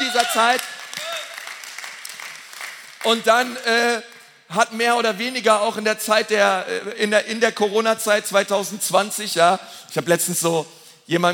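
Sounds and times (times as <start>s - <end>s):
whoops and cheers: 0.0s - 1.6s
audience applause: 0.0s - 3.3s
speech: 0.2s - 0.8s, 3.0s - 11.3s.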